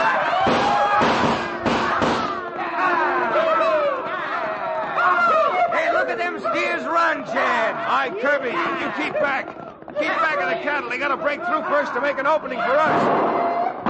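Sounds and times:
people shouting: 0:00.0 - 0:13.8
volley of sharp loud gunshots: 0:00.4 - 0:02.4, 0:12.8 - 0:13.8
speech: 0:08.0 - 0:13.5.

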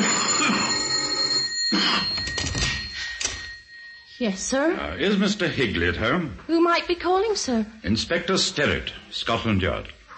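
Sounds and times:
doorbell ringing: 0:00.0 - 0:05.6
speech: 0:04.2 - 0:10.1.

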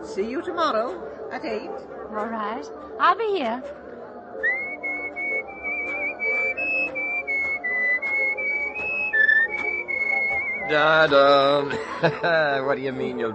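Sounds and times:
speech: 0:00.2 - 0:03.8, 0:10.7 - 0:13.3
person whistling a tune: 0:04.4 - 0:12.6
laughter: 0:10.7 - 0:13.3.

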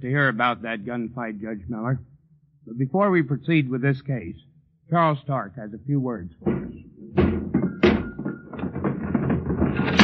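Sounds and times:
speech: 0:00.0 - 0:07.6
wooden thumps and bangs at a stuck window: 0:06.4 - 0:10.0
stuck window rattling and scraping as it is forced: 0:06.5 - 0:10.0.

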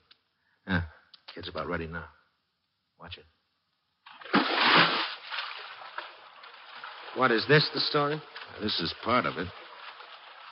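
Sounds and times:
speech: 0:00.7 - 0:02.2, 0:03.0 - 0:03.4, 0:07.2 - 0:09.6
swimmer splashing through a stadium pool with powerful strokes: 0:04.1 - 0:10.5.

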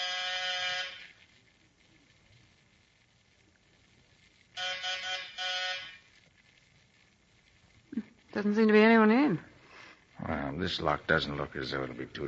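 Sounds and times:
harsh electric doorbell buzzer: 0:00.0 - 0:01.1, 0:04.6 - 0:06.0
speech: 0:08.4 - 0:09.5, 0:10.2 - 0:12.2.

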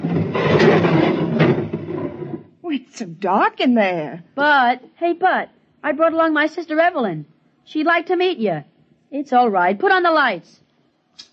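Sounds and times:
door with a sonic lock opening with a grinding rush: 0:00.0 - 0:02.5
speech: 0:02.7 - 0:10.6.

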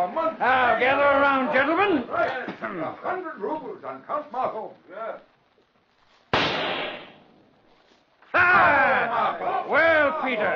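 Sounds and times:
speech: 0:00.0 - 0:05.3, 0:08.4 - 0:10.5
pistol shot fired at an insect: 0:06.3 - 0:07.3.

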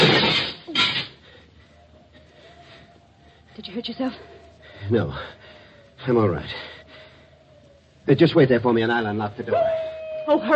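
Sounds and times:
window glass being broken through: 0:00.0 - 0:01.0
speech: 0:03.6 - 0:05.4, 0:06.0 - 0:06.7, 0:08.0 - 0:10.5.

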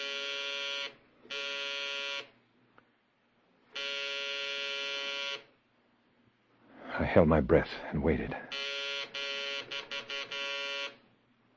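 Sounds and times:
electric doorbell buzzing: 0:00.0 - 0:02.3, 0:03.7 - 0:05.5, 0:08.5 - 0:11.0
speech: 0:07.0 - 0:08.7.

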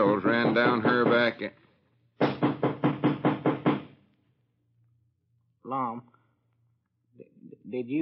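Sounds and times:
loud knocking on a door: 0:00.0 - 0:01.4, 0:02.2 - 0:04.0
speech: 0:00.2 - 0:02.4, 0:07.7 - 0:07.9.

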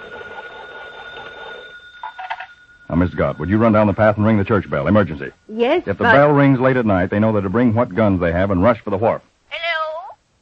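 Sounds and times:
hand-cranked telephone ringing: 0:00.0 - 0:05.2
speech: 0:02.9 - 0:09.3.

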